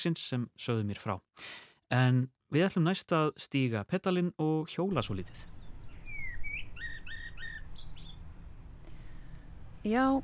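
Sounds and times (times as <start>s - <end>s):
speech: 0.0s - 5.6s, 9.8s - 10.2s
birds singing: 5.0s - 9.5s.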